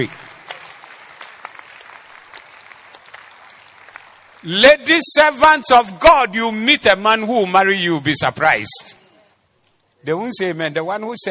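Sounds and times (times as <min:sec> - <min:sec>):
speech: 0:00.0 - 0:00.3, 0:04.4 - 0:09.0, 0:10.0 - 0:11.2
audience clapping: 0:00.0 - 0:04.9.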